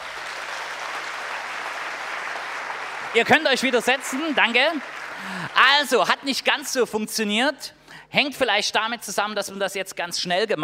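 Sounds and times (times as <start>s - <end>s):
audience applause: 0.0s - 5.8s
speech: 3.1s - 10.6s.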